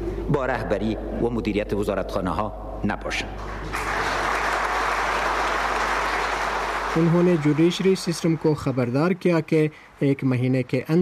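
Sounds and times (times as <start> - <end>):
speech: 0.3 - 4.1, 6.9 - 10.9
applause in a parliament hall after a speech: 3.4 - 9.5.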